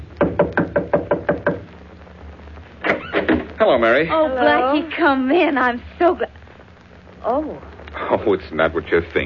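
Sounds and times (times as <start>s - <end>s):
knocking on a door: 0.2s - 1.7s
speech: 3.8s - 6.3s, 7.2s - 7.7s, 8.2s - 9.2s.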